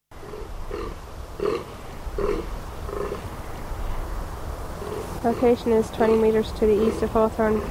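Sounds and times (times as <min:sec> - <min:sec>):
fallow deer groans: 0:00.2 - 0:03.4, 0:04.8 - 0:07.6
speech: 0:05.2 - 0:07.6.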